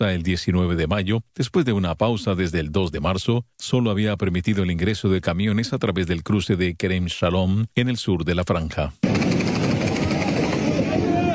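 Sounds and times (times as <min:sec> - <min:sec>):
speech: 0:00.0 - 0:09.3
gunfire: 0:09.0 - 0:11.3.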